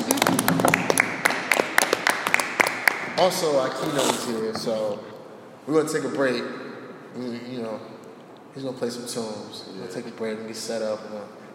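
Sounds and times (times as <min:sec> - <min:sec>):
audience clapping: 0:00.0 - 0:03.8
speech: 0:03.2 - 0:07.9, 0:08.5 - 0:11.5.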